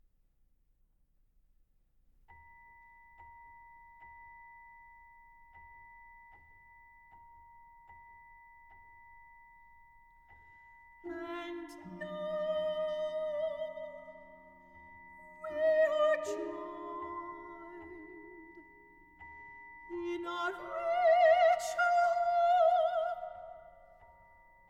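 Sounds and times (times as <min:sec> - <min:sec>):
soprano singing: 0:11.0 - 0:24.1.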